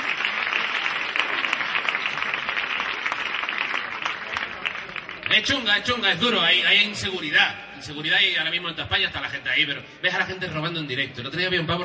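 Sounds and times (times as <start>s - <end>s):
audience applause: 0.0s - 5.6s
speech: 5.4s - 11.8s.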